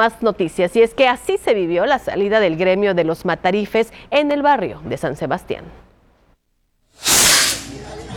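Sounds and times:
speech: 0.0 - 5.8
festival rocket hissing whoosh: 7.0 - 7.8.

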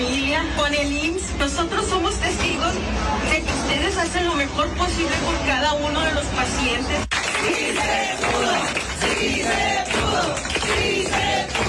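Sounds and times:
speech: 0.4 - 11.6
audience applause: 7.1 - 11.6.

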